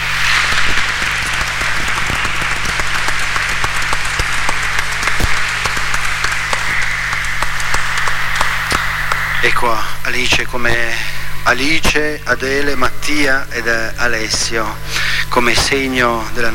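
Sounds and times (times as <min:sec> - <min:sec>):
audience applause: 0:00.0 - 0:09.9
speech: 0:09.4 - 0:16.5.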